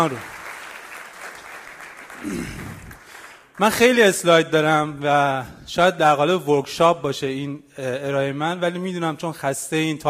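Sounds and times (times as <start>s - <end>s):
speech: 0.0s - 0.4s, 2.2s - 2.9s, 3.6s - 10.0s
audience applause: 0.0s - 3.7s.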